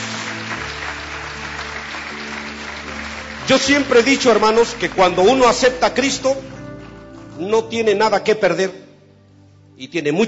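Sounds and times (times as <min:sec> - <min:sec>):
audience applause: 0:00.0 - 0:06.2
speech: 0:03.5 - 0:06.5, 0:07.4 - 0:08.8, 0:09.8 - 0:10.2.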